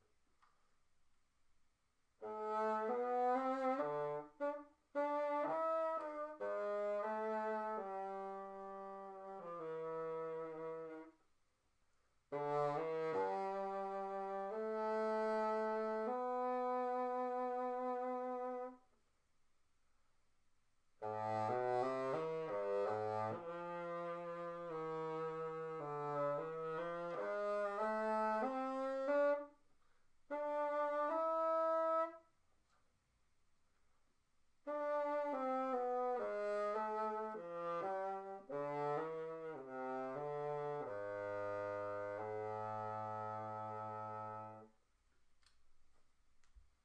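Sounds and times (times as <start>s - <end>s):
bassoon: 2.2s - 11.2s, 12.3s - 18.8s, 21.0s - 29.6s, 30.3s - 32.2s, 34.6s - 44.8s.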